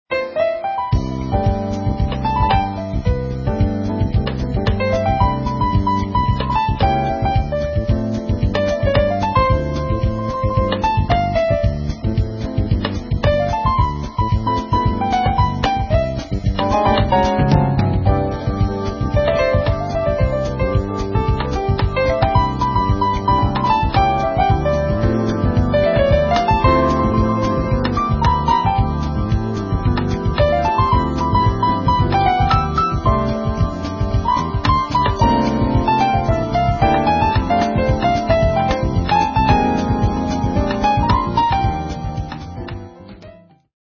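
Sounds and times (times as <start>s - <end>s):
jazz ensemble playing samba: 1.0s - 42.3s.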